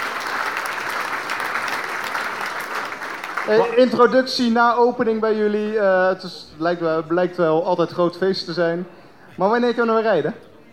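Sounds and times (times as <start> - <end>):
audience applause: 0.0 - 4.2
speech: 3.5 - 10.5.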